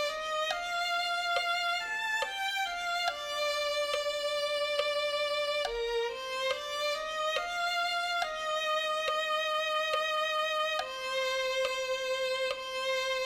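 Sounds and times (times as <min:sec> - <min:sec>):
violin melody: 0:00.0 - 0:13.2.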